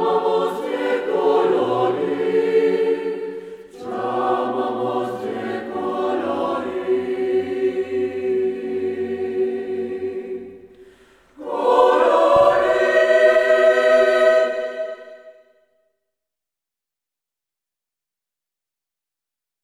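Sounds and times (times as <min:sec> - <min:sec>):
choir singing: 0:00.0 - 0:15.5.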